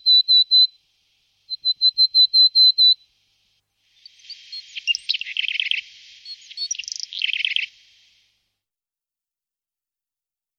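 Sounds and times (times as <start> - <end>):
willow tit singing clear whistled notes: 0.0 - 3.1, 3.8 - 8.1.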